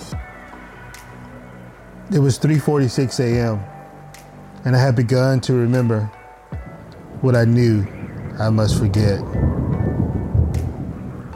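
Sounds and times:
speech: 2.1 - 3.8, 4.6 - 6.2, 7.2 - 9.6
loud thunder clap: 6.7 - 11.3.

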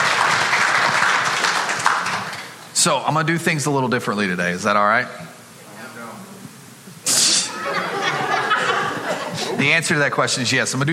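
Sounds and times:
audience clapping: 0.0 - 2.8
speech: 2.8 - 5.4, 9.6 - 10.9
laughter: 7.5 - 10.0.

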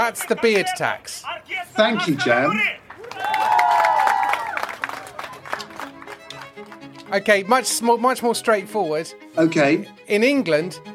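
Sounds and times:
speech: 0.1 - 2.8, 7.1 - 10.9
round of applause: 2.8 - 7.0.

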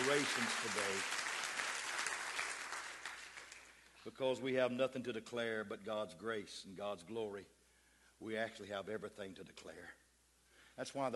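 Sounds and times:
audience clapping hands: 0.0 - 4.0
speech: 0.1 - 1.3, 4.0 - 7.6, 8.2 - 10.0, 10.8 - 11.1.

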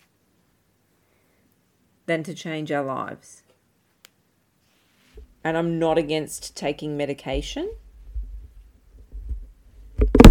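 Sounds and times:
speech: 2.1 - 3.4, 5.4 - 7.8
microphone being knocked: 8.1 - 10.2.

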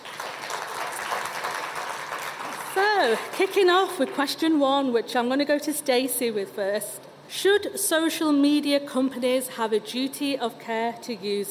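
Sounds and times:
audience applause for panel: 0.0 - 3.4
speech: 3.0 - 11.4.

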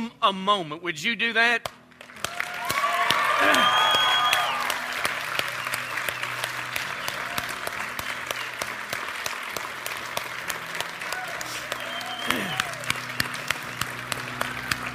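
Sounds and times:
speech: 0.1 - 1.8, 3.4 - 3.9
audience applause: 2.0 - 14.9
audience cheering: 2.2 - 9.5, 10.8 - 14.9
audience whistling: 3.3 - 4.8, 5.4 - 8.7, 11.5 - 13.9.

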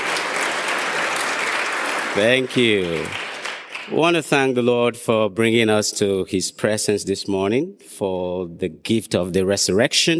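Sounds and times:
audience clapping: 0.0 - 4.6
speech: 2.1 - 3.2, 3.9 - 10.1.

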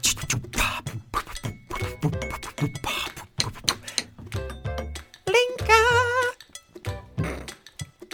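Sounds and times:
sharp clinks and taps: 0.1 - 5.2, 6.4 - 8.0
bright metallic ring: 1.2 - 5.2, 6.4 - 6.8.

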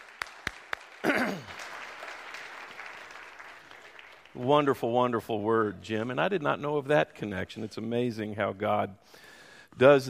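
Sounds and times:
crowd applause: 0.0 - 4.5
speech: 4.4 - 10.0.

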